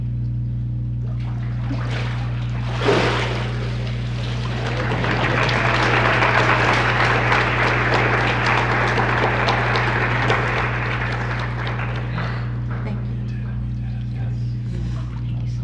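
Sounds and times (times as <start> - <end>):
constant low hum: 0.0 - 15.6
water sloshing and dripping: 1.0 - 5.3
water splashing as a person is immersed during a church baptism: 1.1 - 8.0
laughter: 4.2 - 12.8.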